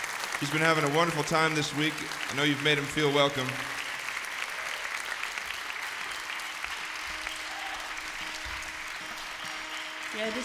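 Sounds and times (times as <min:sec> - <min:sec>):
audience applause welcoming an accordion player on stage: 0:00.0 - 0:10.4
speech: 0:00.4 - 0:03.8, 0:10.2 - 0:10.4.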